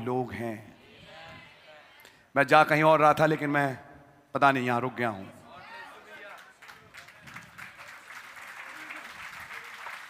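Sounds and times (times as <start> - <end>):
speech: 0.0 - 0.7, 2.3 - 5.4
audience clapping: 6.1 - 10.0.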